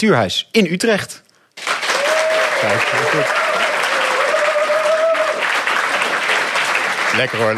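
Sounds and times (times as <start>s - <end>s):
speech: 0.0s - 1.7s, 2.6s - 3.7s, 7.2s - 7.5s
live audience applause: 1.6s - 7.5s.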